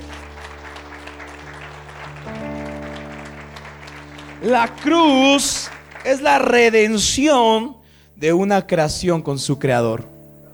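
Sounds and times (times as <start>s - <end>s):
audience applause: 0.0s - 7.6s
low sustained musical tone: 0.0s - 10.5s
speech: 4.4s - 10.1s.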